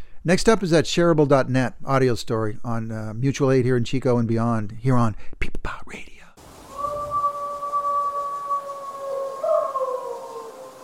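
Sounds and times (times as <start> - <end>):
speech: 0.2 - 6.2
people howling imitating wolves: 6.7 - 10.8.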